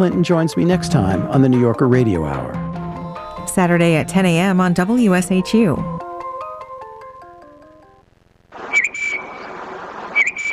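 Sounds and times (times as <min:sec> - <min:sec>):
speech: 0:00.0 - 0:02.6, 0:03.6 - 0:06.0
tufted titmouse song: 0:08.6 - 0:10.5.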